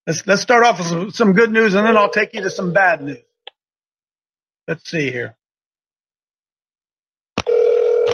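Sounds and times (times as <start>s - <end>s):
speech: 0.0s - 3.3s, 4.7s - 5.4s
telephone line ringing out on a call: 1.8s - 3.1s, 7.4s - 8.1s.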